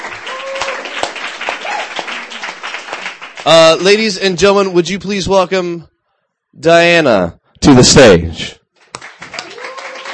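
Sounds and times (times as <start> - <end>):
audience applause at a reading event: 0.0 - 4.2, 8.8 - 10.1
speech: 3.4 - 5.9, 6.6 - 8.6.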